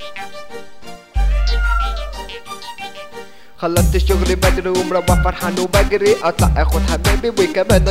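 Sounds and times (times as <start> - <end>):
cat meowing: 1.2 - 2.5, 4.9 - 5.3
speech: 3.6 - 7.8.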